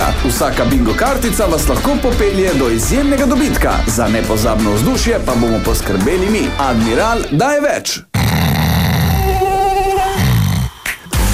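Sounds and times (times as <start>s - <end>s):
speech: 0.4s - 8.1s
mosquito buzzing: 8.2s - 11.1s.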